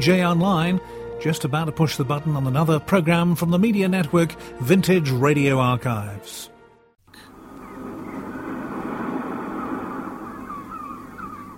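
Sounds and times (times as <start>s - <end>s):
speech: 0.0s - 6.5s
sea waves: 7.2s - 11.5s
seagull cries: 7.2s - 11.5s.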